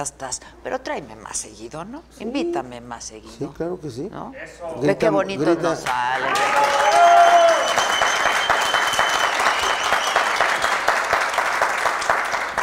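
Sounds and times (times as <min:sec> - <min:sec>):
speech: 0:00.0 - 0:07.6
audience applauding: 0:05.8 - 0:12.6
audience shouting: 0:06.3 - 0:07.8.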